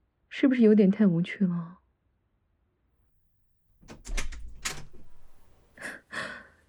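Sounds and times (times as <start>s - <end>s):
speech: 0.4s - 1.8s
key rattling in a lock: 3.8s - 5.5s
room door pushed open: 3.8s - 5.7s.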